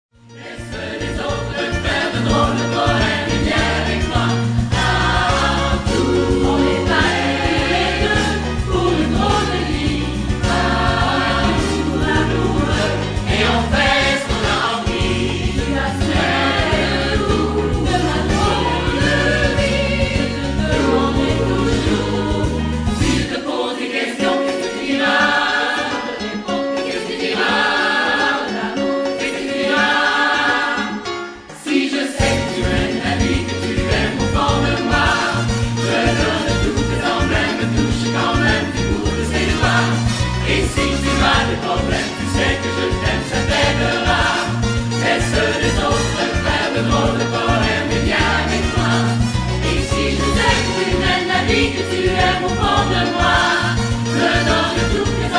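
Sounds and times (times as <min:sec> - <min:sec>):
SATB four-part choir singing: 0:00.4 - 0:55.3.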